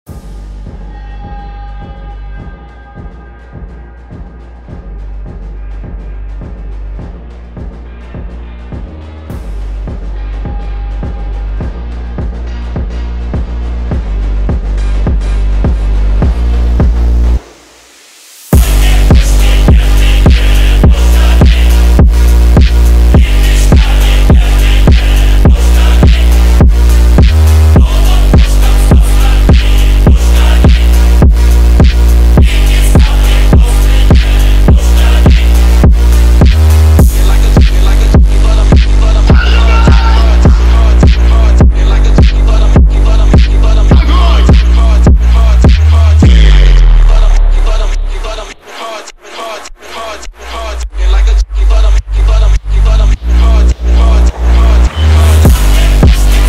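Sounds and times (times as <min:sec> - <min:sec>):
phonk remix: 0:00.1 - 0:56.4.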